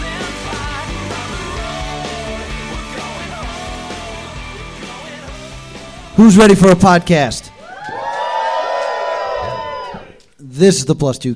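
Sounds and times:
speech: 0:06.2 - 0:07.5, 0:10.6 - 0:11.3
live audience applause: 0:07.6 - 0:10.2.

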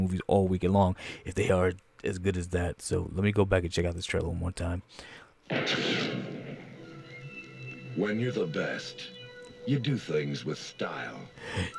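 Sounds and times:
speech: 0:00.1 - 0:06.3, 0:08.0 - 0:11.7
gunshot in a movie trailer: 0:05.5 - 0:06.8.

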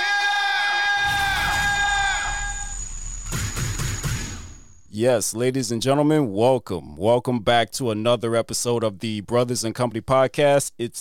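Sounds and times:
crowd cheering and whooping: 0:00.0 - 0:03.4
speech: 0:05.0 - 0:10.9.

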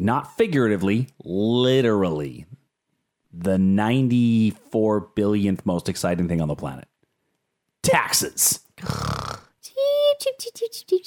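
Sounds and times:
speech: 0:00.0 - 0:02.5, 0:03.3 - 0:06.9, 0:07.8 - 0:09.3, 0:10.2 - 0:11.0
person fake snoring: 0:08.8 - 0:09.6.

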